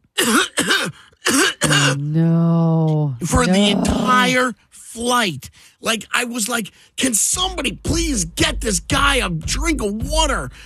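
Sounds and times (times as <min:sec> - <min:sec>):
person imitating harsh throaty coughing of a sick passenger: 0:00.2 - 0:02.0, 0:03.3 - 0:04.4
strained groan: 0:03.3 - 0:04.5
speech: 0:03.3 - 0:10.6.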